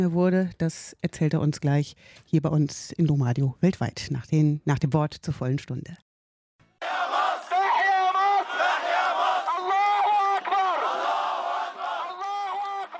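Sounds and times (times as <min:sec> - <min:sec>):
speech: 0:00.0 - 0:06.0
protest crowd chanting in Cairo streets: 0:06.8 - 0:12.9.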